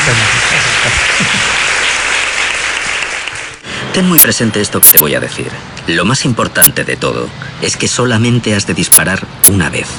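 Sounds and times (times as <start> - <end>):
applause: 0.0 - 3.6
speech: 4.0 - 9.9.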